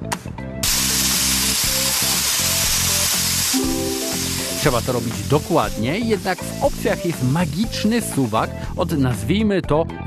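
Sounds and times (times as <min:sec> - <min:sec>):
paint spray gun spraying: 0:00.6 - 0:07.2
speech: 0:04.6 - 0:10.0.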